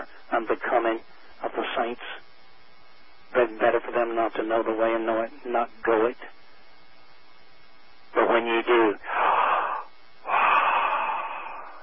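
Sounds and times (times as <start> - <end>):
speech: 0.4 - 2.2, 3.3 - 6.4, 8.4 - 9.2
rhythmic breathing: 9.0 - 11.8.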